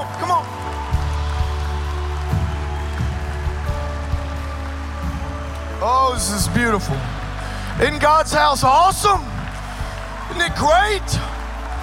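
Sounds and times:
audience clapping: 0.0 - 11.8
speech: 6.1 - 7.2, 7.8 - 9.3, 10.3 - 11.3.

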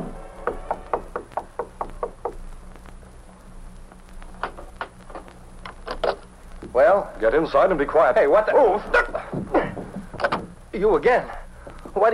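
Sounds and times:
knocking on a door: 0.4 - 2.4
speech: 6.8 - 9.1, 10.8 - 11.4.

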